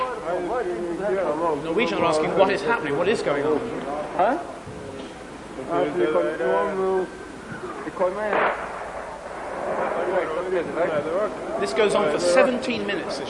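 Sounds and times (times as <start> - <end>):
speech: 0.4 - 4.7, 5.6 - 8.6, 9.7 - 13.2
artillery shell fire: 8.3 - 10.9.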